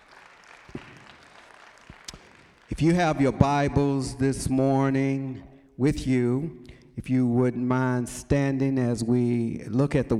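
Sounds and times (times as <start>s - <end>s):
audience applauding: 0.0s - 3.1s
speech: 2.8s - 10.1s.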